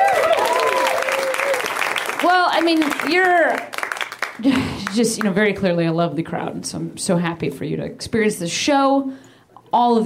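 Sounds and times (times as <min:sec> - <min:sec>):
audience applause: 0:00.0 - 0:04.9
speech: 0:02.2 - 0:03.7, 0:04.4 - 0:10.0.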